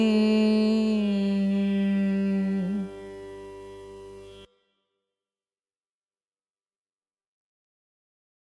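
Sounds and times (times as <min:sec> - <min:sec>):
carnatic music in raga ranjani: 0:00.0 - 0:04.7.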